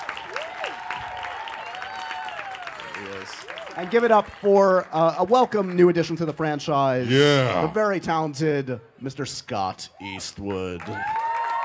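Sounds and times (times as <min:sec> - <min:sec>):
audience applause for an actor joining a Fast and Furious panel: 0:00.0 - 0:06.5, 0:10.2 - 0:11.6
speech: 0:03.0 - 0:11.2.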